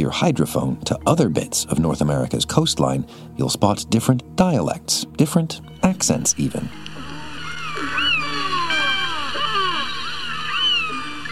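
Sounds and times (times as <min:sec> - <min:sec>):
speech: 0:00.0 - 0:07.0
killer whale calls and whistles recorded underwater: 0:06.6 - 0:11.3.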